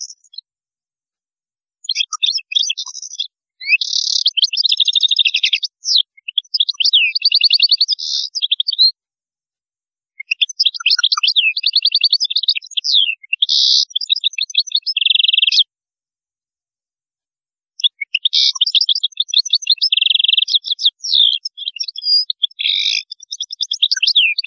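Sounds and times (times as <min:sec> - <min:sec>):
European goldfinch tinkling twittering song: 0:01.8 - 0:08.9, 0:10.3 - 0:15.6, 0:17.8 - 0:24.4.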